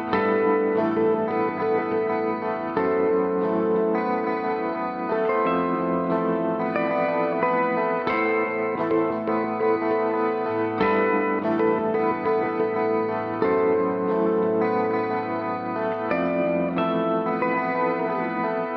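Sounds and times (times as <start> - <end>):
ambient guitars: 0.0 - 18.7.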